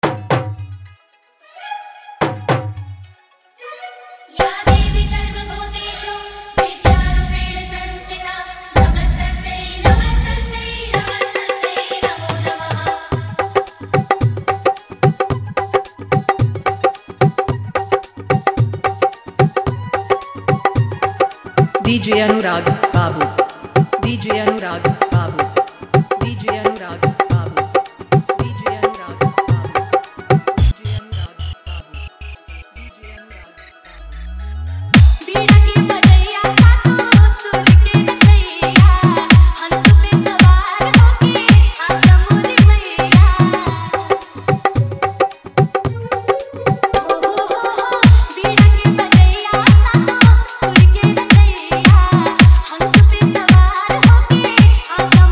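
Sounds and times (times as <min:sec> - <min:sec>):
devotional music mix with dholak: 0:00.0 - 0:01.1, 0:02.2 - 0:03.2, 0:04.4 - 0:55.3.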